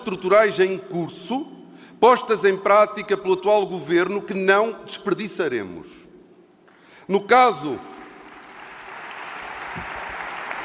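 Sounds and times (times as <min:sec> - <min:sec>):
speech: 0:00.0 - 0:06.0, 0:07.1 - 0:07.9
audience applause: 0:08.2 - 0:10.6.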